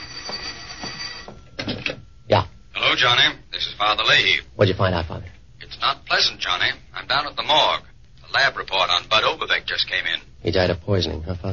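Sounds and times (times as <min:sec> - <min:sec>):
telephone bell ringing like an old recording: 0:00.0 - 0:02.3
speech: 0:03.0 - 0:05.2, 0:05.8 - 0:11.5.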